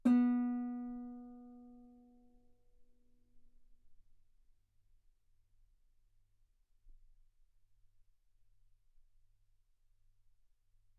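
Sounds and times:
guitar B3 note on B string played fortissimo: 0.0s - 1.7s.

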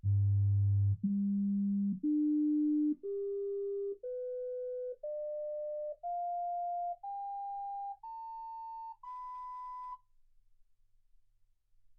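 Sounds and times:
sine tones: 1.0s - 10.0s.

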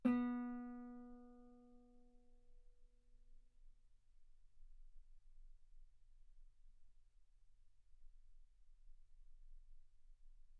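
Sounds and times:
loud guitar note on the B string: 0.0s - 1.2s.

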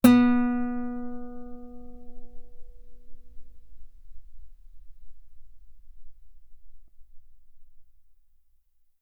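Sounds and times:
loud guitar note on the B string: 0.0s - 3.4s.

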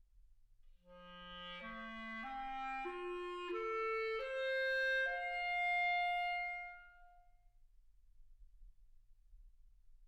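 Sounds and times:
clarinet: 0.9s - 7.3s.

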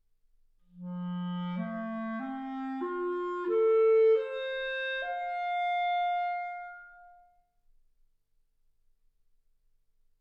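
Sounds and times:
clarinet: 0.7s - 7.4s.

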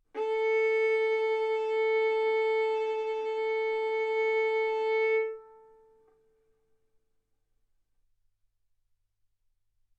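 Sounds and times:
violin bowed arco notes: 0.2s - 6.2s.

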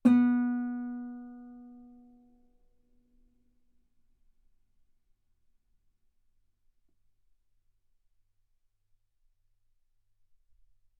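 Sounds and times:
guitar note B3: 0.1s - 1.8s.

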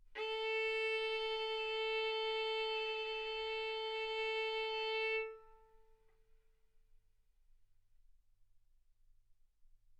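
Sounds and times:
violin bowed arco notes: 0.1s - 5.7s.

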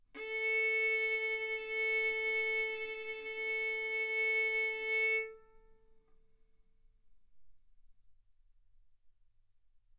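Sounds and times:
violin bowed mezzo-forte on the A string, A4 and B4: 0.2s - 5.8s.

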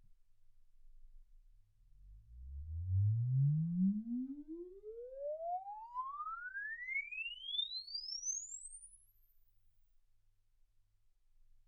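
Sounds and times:
exponential sine sweep from 10 Hz to 24 kHz: 2.4s - 9.4s.

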